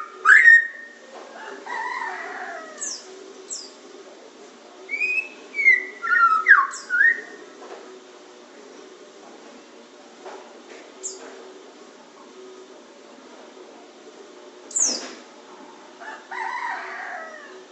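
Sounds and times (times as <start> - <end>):
Oriental magpie-robin singing: 0.0 - 0.9, 2.8 - 3.8, 4.9 - 7.4, 11.0 - 11.2, 14.7 - 15.1.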